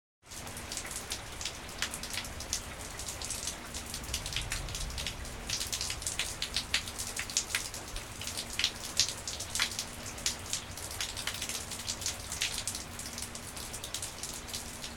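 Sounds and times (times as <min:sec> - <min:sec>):
rain: 0:00.2 - 0:14.9.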